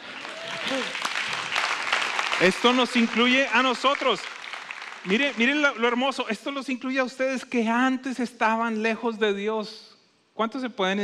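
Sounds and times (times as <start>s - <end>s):
audience applause: 0.0s - 6.0s
speech: 2.4s - 4.3s, 5.0s - 11.0s.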